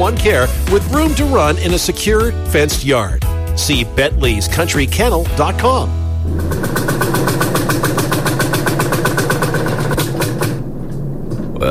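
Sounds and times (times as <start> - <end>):
speech: 0.1 - 7.1
engine chugging and dying out of fuel: 6.2 - 11.6.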